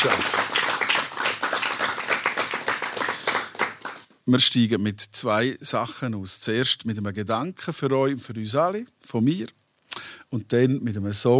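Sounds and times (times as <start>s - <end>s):
speech: 0.0s - 0.4s, 4.3s - 9.6s, 10.3s - 11.3s
audience applause: 0.0s - 4.1s.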